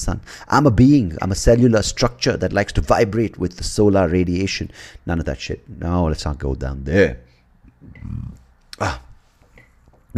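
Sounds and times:
speech: 0:00.0 - 0:09.0
person burping: 0:07.8 - 0:09.2.

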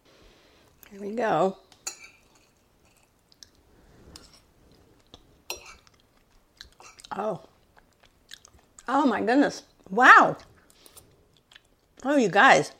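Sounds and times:
speech: 0:00.9 - 0:01.6, 0:07.2 - 0:07.5, 0:08.9 - 0:10.5, 0:12.0 - 0:12.7
person chewing cinnamon roll oatmeal drizzled with cream cheese during a taste test: 0:02.2 - 0:08.9, 0:09.7 - 0:12.0.

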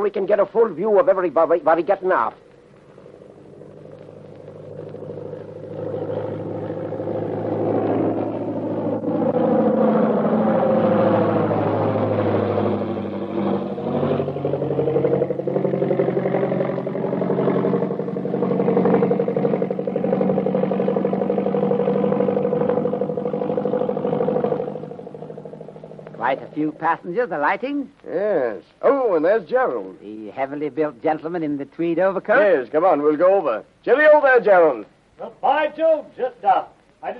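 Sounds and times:
speech: 0:00.0 - 0:02.5, 0:26.6 - 0:37.1
airplane arriving: 0:00.0 - 0:27.6.

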